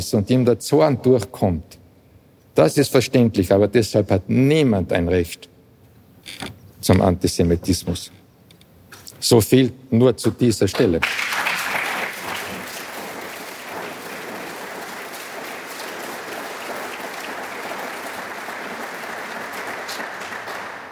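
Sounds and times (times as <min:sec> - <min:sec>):
speech: 0:00.0 - 0:01.8, 0:02.6 - 0:05.5, 0:06.2 - 0:08.2, 0:09.2 - 0:11.3
audience applause: 0:11.0 - 0:20.8.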